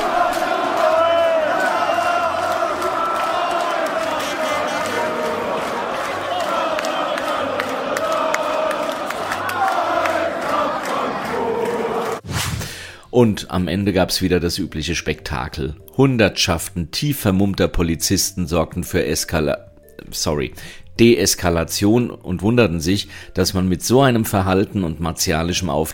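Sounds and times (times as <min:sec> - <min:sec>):
football fans shouting and chanting: 0:00.0 - 0:12.2
speech: 0:13.2 - 0:25.9.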